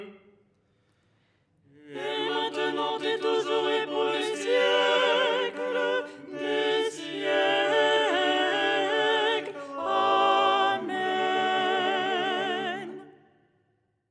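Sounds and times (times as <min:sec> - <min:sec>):
soprano singing: 0:01.9 - 0:13.1.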